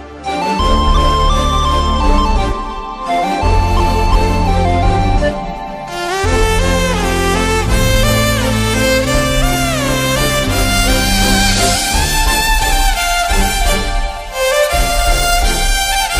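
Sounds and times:
Telugu love background music ringtone: 0.3s - 16.1s.

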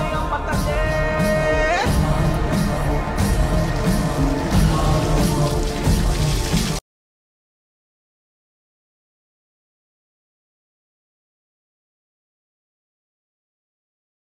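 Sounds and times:
temple background music: 0.0s - 6.8s.

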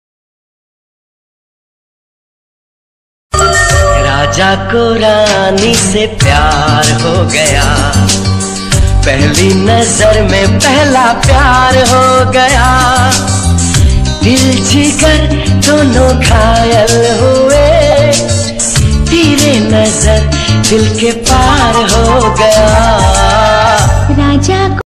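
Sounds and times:
old romantic Hindi love song ringtone: 3.3s - 24.8s.

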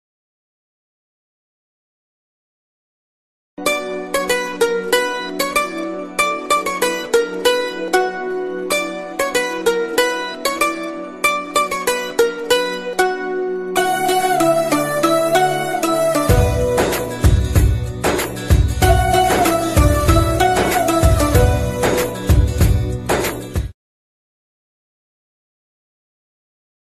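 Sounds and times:
Telugu ringtone background music: 3.6s - 23.7s.

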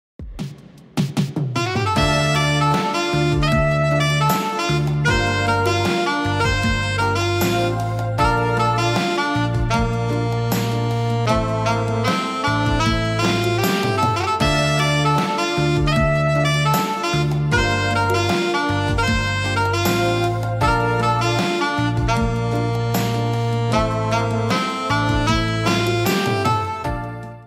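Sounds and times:
saxophone instrumental background music ringtone version: 1.4s - 27.4s.

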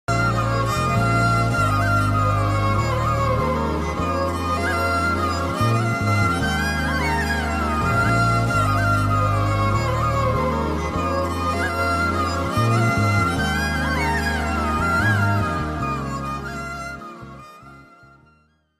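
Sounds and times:
Hindi movie background love song: 0.1s - 18.4s.

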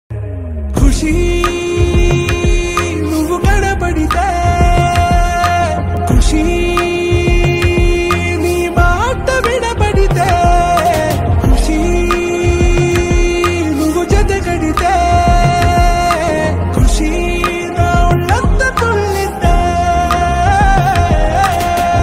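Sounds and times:
title song background music ringtone: 0.2s - 22.0s.

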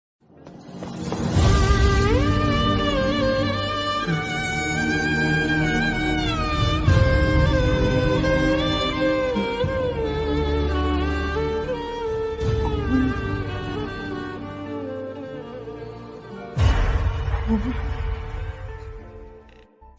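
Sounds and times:
sad background music: 0.3s - 19.9s.

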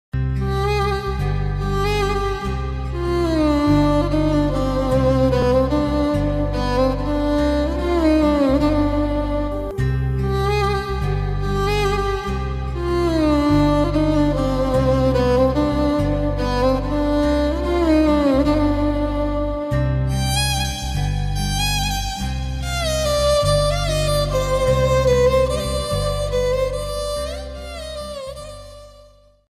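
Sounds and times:
emotional background music: 0.2s - 29.2s.

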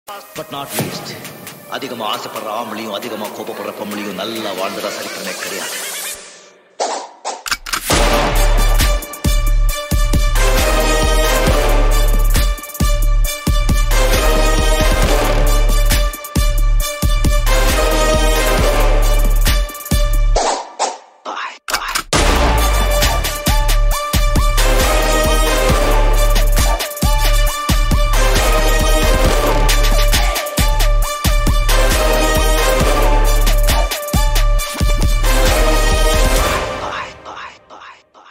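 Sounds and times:
background theme music: 0.1s - 21.2s, 21.9s - 38.0s.

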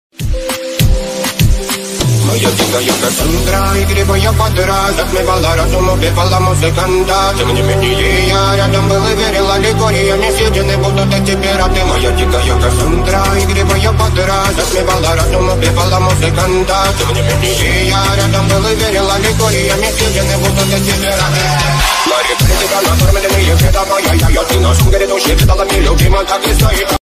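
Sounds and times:
English remix ringtone: 0.2s - 26.9s.

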